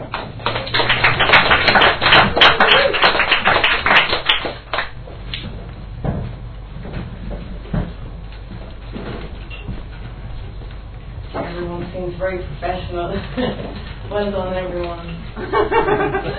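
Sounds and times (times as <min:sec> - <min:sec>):
audience round of applause: 0:00.1 - 0:05.0
speech: 0:12.2 - 0:16.3
laughter: 0:15.4 - 0:16.3.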